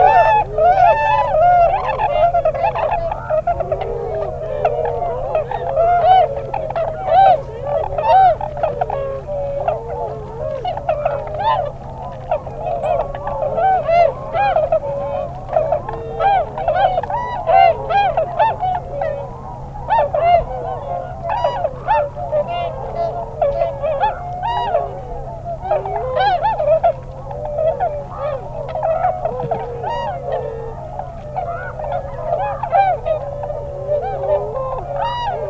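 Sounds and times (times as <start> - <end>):
tundra swan flock hooting: 0.0 - 35.4.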